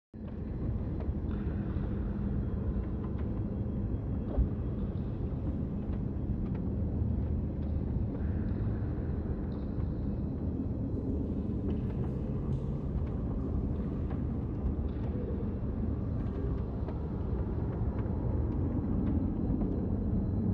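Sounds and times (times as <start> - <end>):
spooky ambience: 0.2 - 20.5.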